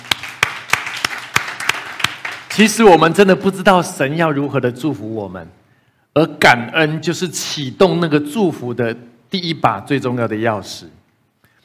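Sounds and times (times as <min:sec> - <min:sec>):
audience applause: 0:00.0 - 0:02.7
speech: 0:02.6 - 0:05.6, 0:06.2 - 0:11.0.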